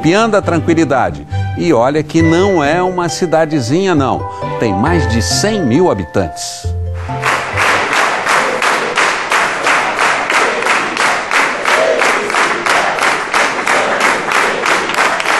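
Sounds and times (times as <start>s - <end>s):
speech: 0.0s - 7.3s
audience clapping: 6.9s - 15.3s.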